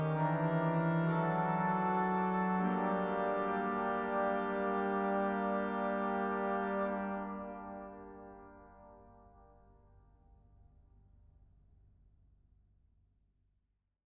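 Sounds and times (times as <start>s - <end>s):
organ interlude in G minor: 0.0s - 8.3s.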